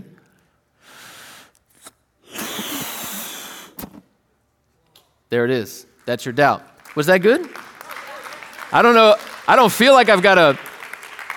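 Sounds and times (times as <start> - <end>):
breath blown into a balloon: 0.8 - 4.0
speech: 5.3 - 7.6, 8.7 - 10.7.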